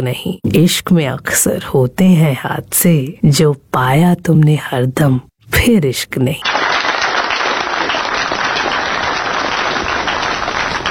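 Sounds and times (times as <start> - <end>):
speech: 0.0 - 6.6
thunderous applause: 6.4 - 10.9.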